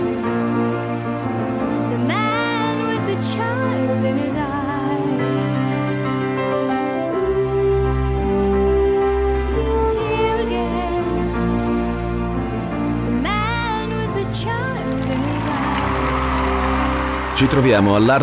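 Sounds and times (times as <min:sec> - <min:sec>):
music: 0:00.0 - 0:18.2
crowd cheering and applauding at the Arts Centre in Poole, Dorset: 0:14.6 - 0:18.2
speech: 0:17.4 - 0:18.2.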